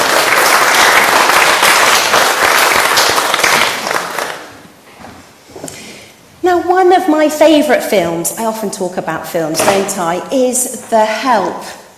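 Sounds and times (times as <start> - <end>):
audience applause: 0.0 - 4.6
speech: 6.8 - 11.8.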